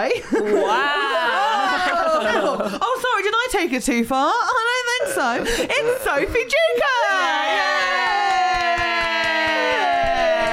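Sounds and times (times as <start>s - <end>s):
speech: 0.0s - 1.0s, 2.2s - 4.6s, 5.2s - 7.7s
laughter: 0.0s - 3.0s, 5.2s - 10.5s
audience clapping: 8.1s - 10.5s.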